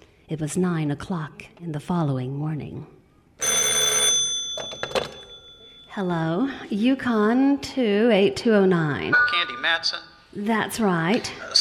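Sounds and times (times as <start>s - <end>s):
speech: 0.3s - 3.0s, 6.0s - 11.5s
old-fashioned telephone bell ringing: 3.4s - 6.0s.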